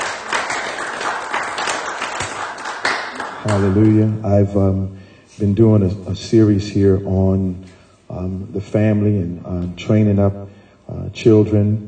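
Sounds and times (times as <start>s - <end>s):
audience clapping hands in praise: 0.0s - 4.2s
speech: 3.4s - 11.8s.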